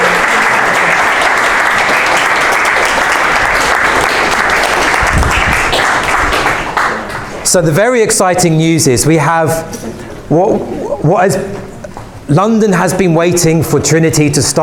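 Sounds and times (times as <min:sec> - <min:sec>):
audience applause: 0:00.0 - 0:07.4
speech: 0:07.5 - 0:11.6, 0:12.3 - 0:14.6.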